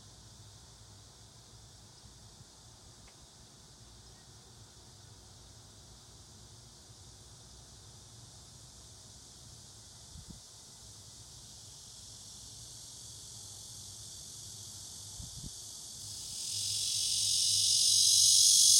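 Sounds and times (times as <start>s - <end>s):
cicada buzzing: 7.6s - 18.7s.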